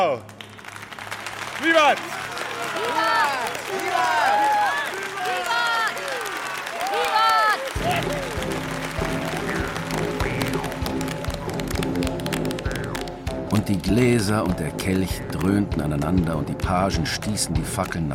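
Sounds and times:
speech: 0.0 - 0.4, 1.6 - 4.4, 13.7 - 18.1
crowd shouting and cheering: 0.0 - 14.6
crowd clapping: 0.0 - 18.1
crowd chatter: 1.8 - 12.4.

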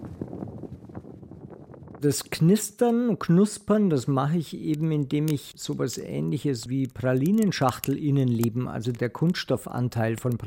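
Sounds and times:
thick cloth flapped near microphone: 0.0 - 2.0
speech: 2.0 - 10.4.

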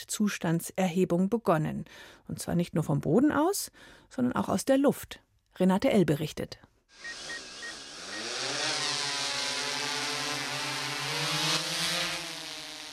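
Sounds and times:
speech: 0.0 - 7.3
quadcopter drone with four rotors taking off: 7.0 - 12.9.

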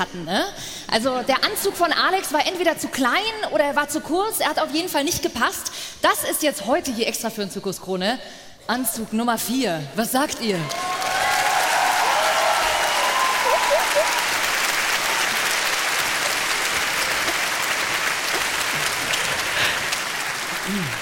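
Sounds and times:
speech: 0.0 - 10.9
live audience applause: 10.6 - 20.9
faint voices and whoops: 10.7 - 14.4.

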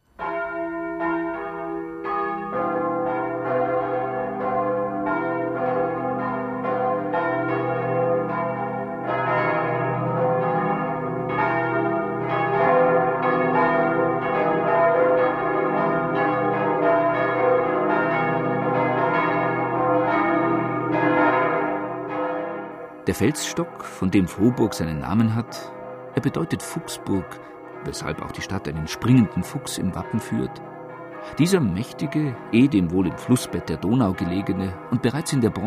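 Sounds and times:
church bells ringing the noon peal in Vohburg: 0.2 - 35.6
speech: 23.1 - 30.6, 31.4 - 35.6.

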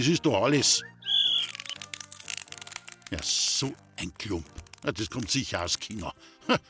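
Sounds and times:
speech: 0.0 - 1.0, 3.1 - 6.6
dog whistle blown hard: 0.8 - 1.6.

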